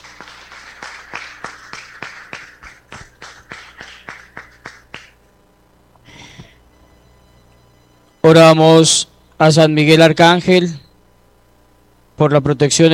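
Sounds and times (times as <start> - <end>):
audience applause: 0.0 - 5.2
speech: 8.3 - 10.8, 12.2 - 12.9.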